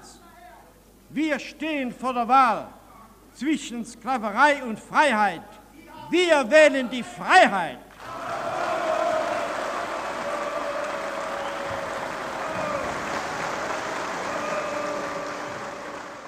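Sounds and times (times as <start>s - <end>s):
speech: 1.1s - 2.8s, 3.4s - 7.8s
long sustained applause: 7.9s - 16.2s.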